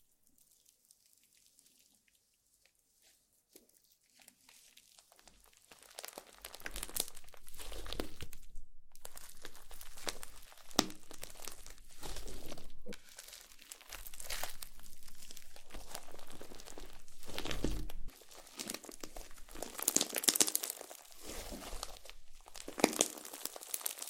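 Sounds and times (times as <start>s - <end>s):
slime being squished and handled: 0.0s - 24.0s
wet crinkling and crackling of slime: 0.0s - 24.0s
bright squelching and popping of slime: 5.7s - 24.0s.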